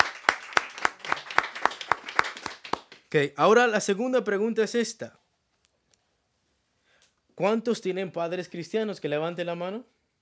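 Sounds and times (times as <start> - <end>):
church congregation clapping in praise: 0.0 - 3.2
speech: 3.1 - 5.2, 7.4 - 10.0.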